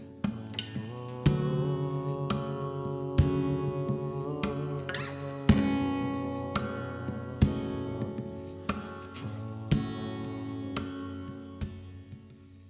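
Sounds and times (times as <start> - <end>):
worship music intro: 0.3 - 12.1.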